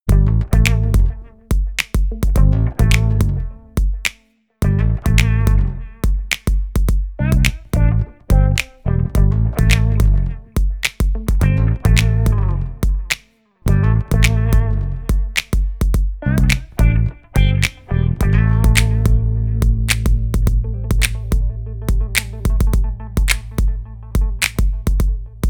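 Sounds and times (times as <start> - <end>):
groovy music: 0.1 - 25.4.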